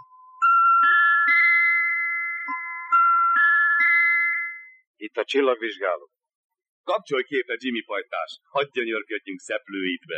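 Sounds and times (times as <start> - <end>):
electronic telephone ring from a call to an observatory: 0.0 - 4.9
speech: 5.0 - 6.2, 6.9 - 10.1.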